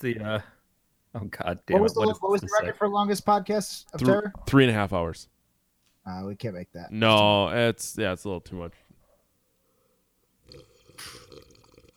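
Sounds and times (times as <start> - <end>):
speech: 0.0 - 5.4, 6.0 - 8.8
soft smacking and swallowing noises: 10.4 - 11.9
wet slurping sip from a drink into the microphone: 10.5 - 11.9.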